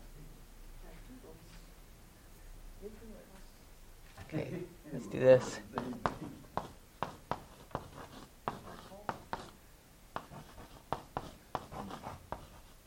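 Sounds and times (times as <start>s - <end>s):
speech: 4.3s - 6.4s
handwriting on a board in a classroom: 5.6s - 9.6s, 10.2s - 12.8s.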